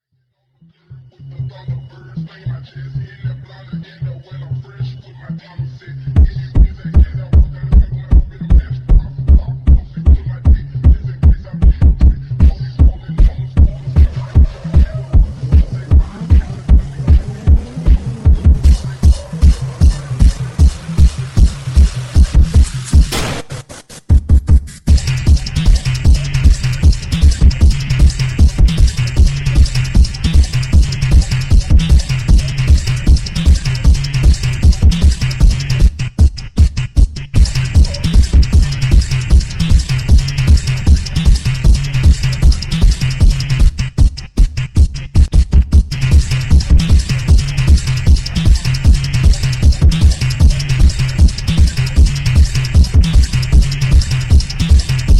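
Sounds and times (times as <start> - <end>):
phonk music: 0.6 - 55.1.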